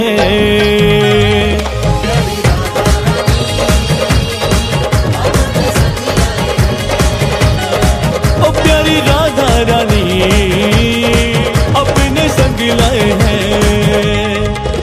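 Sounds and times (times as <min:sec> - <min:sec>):
Krishna bhajan devotional singing: 0:00.0 - 0:14.7.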